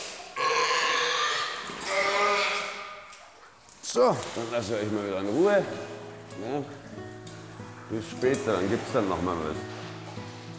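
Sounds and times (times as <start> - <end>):
seal grunting: 0.4 - 3.1
speech: 4.0 - 7.1, 7.9 - 9.8.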